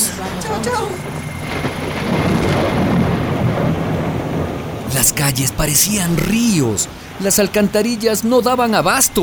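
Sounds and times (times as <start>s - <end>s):
heavy rain: 0.1s - 9.2s
thunder: 1.0s - 4.9s
speech: 5.1s - 9.2s.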